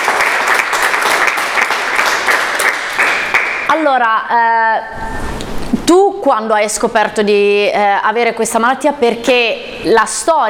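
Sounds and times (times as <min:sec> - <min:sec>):
crowd applauding: 0:00.0 - 0:03.8
speech: 0:03.8 - 0:05.2, 0:05.9 - 0:10.4.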